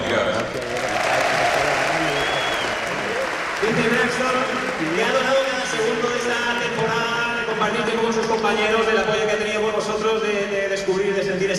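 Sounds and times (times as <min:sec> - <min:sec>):
audience applause and ovation: 0:00.0 - 0:08.2
speech: 0:07.7 - 0:11.5.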